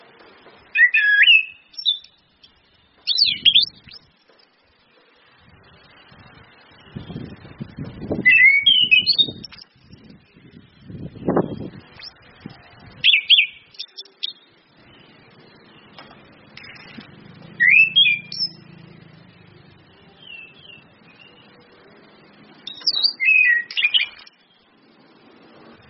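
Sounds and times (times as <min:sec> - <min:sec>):
low rumbling background noise: 0:00.0 - 0:25.8
orange-headed thrush song: 0:00.7 - 0:02.2, 0:02.8 - 0:04.1, 0:08.1 - 0:09.7, 0:13.0 - 0:16.0, 0:17.4 - 0:18.8, 0:19.8 - 0:21.6, 0:22.6 - 0:24.7.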